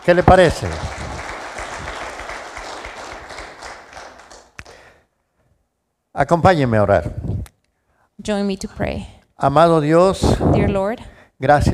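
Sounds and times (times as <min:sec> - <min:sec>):
speech: 0:00.0 - 0:01.0, 0:06.2 - 0:07.4, 0:08.2 - 0:11.7
crowd applauding: 0:00.0 - 0:05.0.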